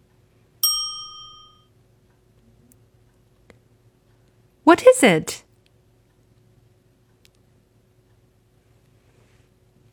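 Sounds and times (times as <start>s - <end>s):
bright metallic ding: 0.6s - 1.6s
speech: 4.7s - 5.4s.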